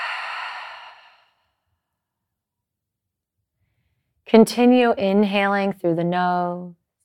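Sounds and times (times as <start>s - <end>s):
long exhale through the mouth during a guided breathing exercise: 0.0s - 1.4s
speech: 4.3s - 6.8s.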